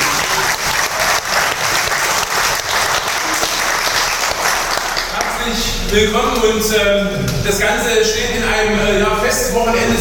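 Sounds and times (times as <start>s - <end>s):
audience applause: 0.0s - 5.4s
speech: 5.9s - 9.9s.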